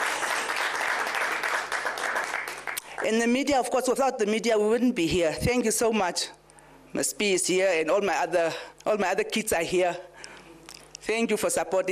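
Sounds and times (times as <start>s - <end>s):
audience applause at a ceremony thanking longtime supporters: 0.0s - 2.8s
speech: 3.0s - 10.1s, 11.0s - 11.9s.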